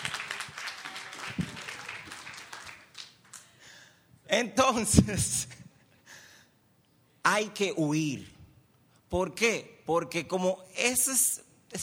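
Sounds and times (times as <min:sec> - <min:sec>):
applause: 0:00.0 - 0:03.6
speech: 0:04.3 - 0:05.6, 0:07.3 - 0:08.4, 0:09.1 - 0:11.8.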